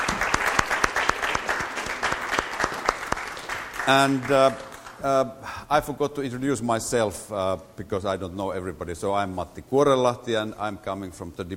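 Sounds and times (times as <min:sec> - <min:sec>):
audience applause: 0:00.0 - 0:05.0
speech: 0:03.9 - 0:11.5.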